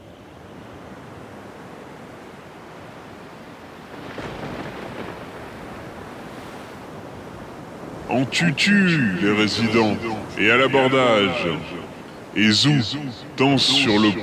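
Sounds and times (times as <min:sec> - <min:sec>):
sea water washing over a coral reef: 0:00.5 - 0:14.2
speech: 0:08.1 - 0:11.8, 0:12.4 - 0:14.2.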